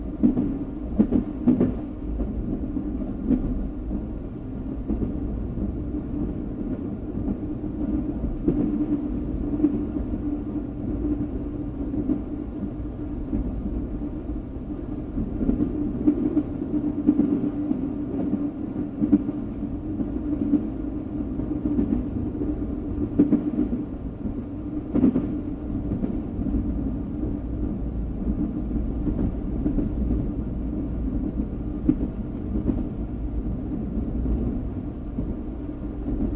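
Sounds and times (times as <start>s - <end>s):
train moving on tracks: 0.0s - 36.3s.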